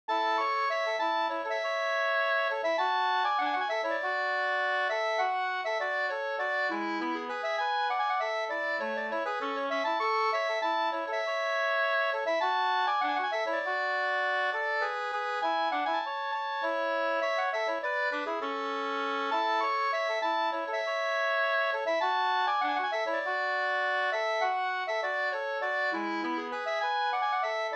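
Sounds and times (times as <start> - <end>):
polka music: 0.1 - 27.7.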